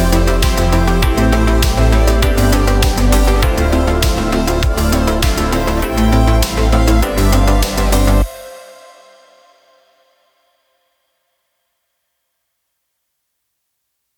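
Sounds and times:
80s synthwave retrowave music: 0.0 - 10.1.

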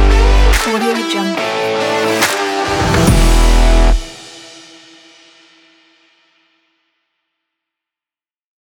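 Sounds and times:
indie rock music: 0.0 - 4.2.

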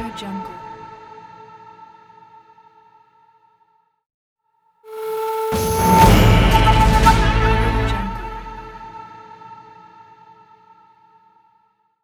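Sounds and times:
Native American style audio logo: 5.0 - 9.3.

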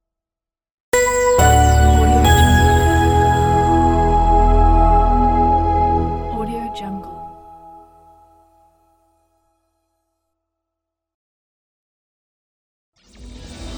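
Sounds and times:
elegant corporate logo jingle: 1.0 - 7.6.

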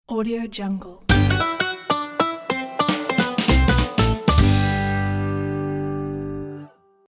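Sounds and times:
bluegrass music: 1.1 - 6.7.

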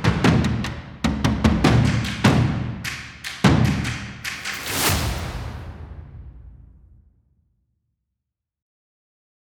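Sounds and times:
drums: 0.0 - 7.0.

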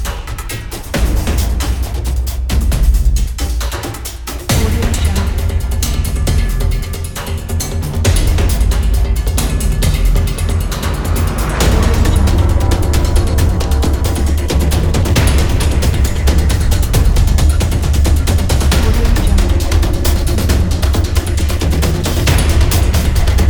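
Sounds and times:
epic tribal hybrid drums: 0.0 - 23.4.

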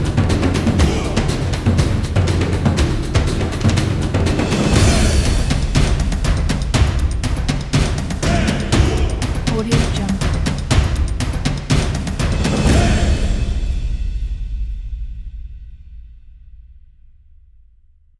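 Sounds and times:
epic sport drums: 0.0 - 17.4.

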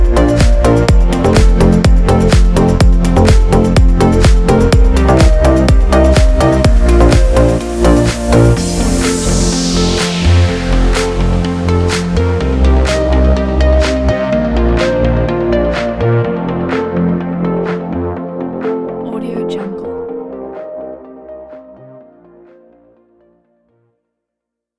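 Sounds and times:
summer modern corporate dance music: 0.0 - 17.9, 18.6 - 20.3.

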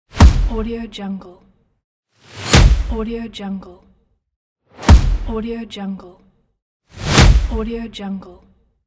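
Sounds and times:
punch hitting body: 0.2 - 0.6, 2.4 - 2.9, 4.8 - 5.3, 7.1 - 7.6.

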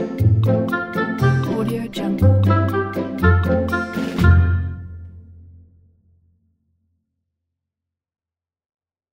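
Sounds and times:
children's book background music: 0.0 - 5.9.

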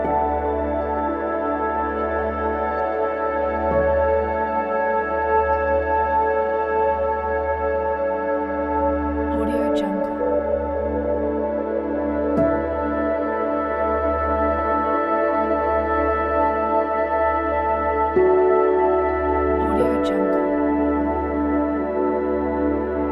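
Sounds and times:
meditative ambient soundscape: 0.0 - 23.0.

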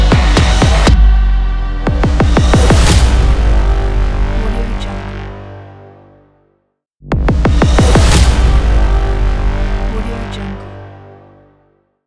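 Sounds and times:
dark cinematic tension trailer ident music: 0.0 - 11.7.

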